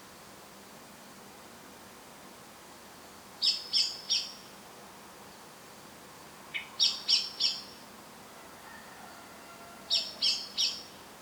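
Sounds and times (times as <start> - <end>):
common blackbird chink calls: 6.6 - 7.8, 9.9 - 11.0.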